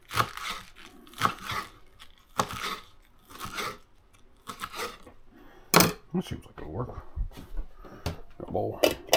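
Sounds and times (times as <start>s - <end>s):
scissors cutting long strips of paper: 0.0s - 5.1s
speech: 6.2s - 7.1s, 8.5s - 9.0s.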